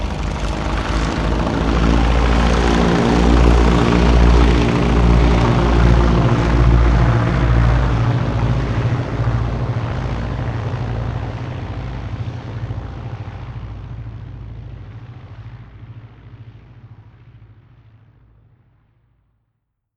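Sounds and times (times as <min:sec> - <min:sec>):
Ju 52 propeller plane rolling and taking off: 0:00.0 - 0:16.0.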